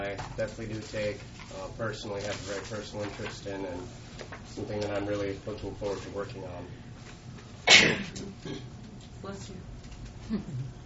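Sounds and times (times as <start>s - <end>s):
speech: 0.1s - 7.2s, 7.8s - 9.7s, 10.3s - 10.8s
sneeze: 7.7s - 8.2s.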